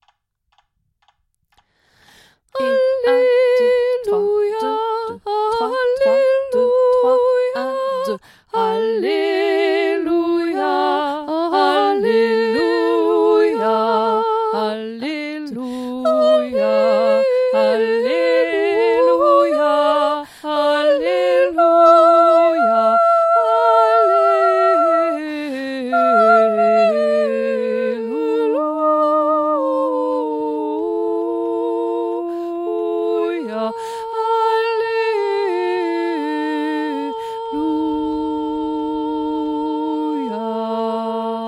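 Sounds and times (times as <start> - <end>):
bass and soprano voices singing a choral piece: 2.6 - 41.4.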